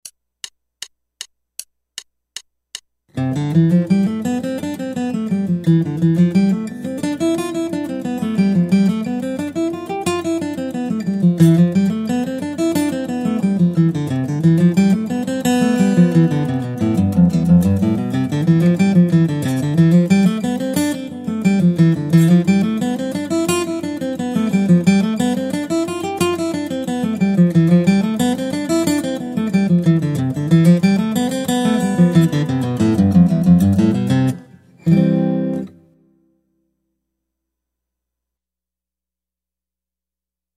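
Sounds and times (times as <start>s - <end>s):
guitar: 3.1s - 36.8s.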